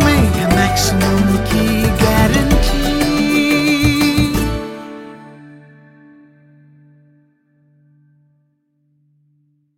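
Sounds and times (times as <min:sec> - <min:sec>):
Hindi song: 0:00.0 - 0:05.8.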